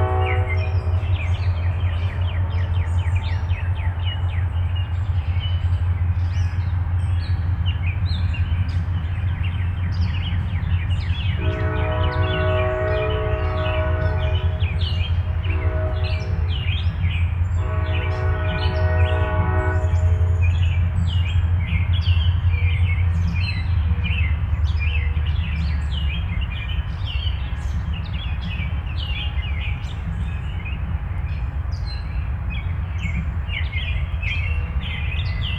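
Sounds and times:
train horn: 0.0s - 3.6s, 11.2s - 16.9s, 17.5s - 20.8s
birds chirping: 0.0s - 35.5s.

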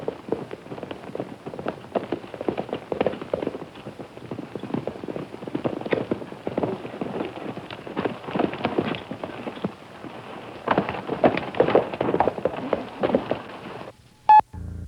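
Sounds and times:
clatter of many horse hooves: 0.0s - 14.8s
high electronic beep: 14.3s - 14.8s.

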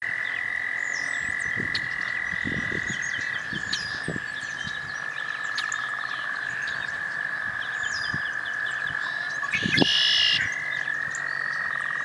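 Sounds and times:
frog chorus trilling at a pond: 0.0s - 12.0s.

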